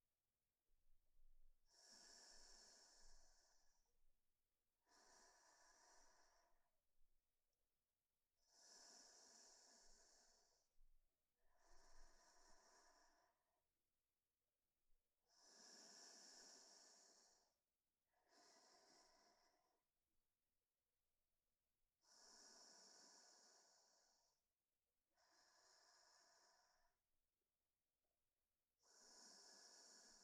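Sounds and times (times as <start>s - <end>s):
sleeping breath: 1.7s - 3.7s, 4.8s - 6.6s, 8.4s - 10.7s, 11.5s - 13.4s, 15.3s - 17.5s, 18.2s - 19.7s, 22.0s - 24.4s, 25.1s - 27.0s, 28.8s - 30.2s.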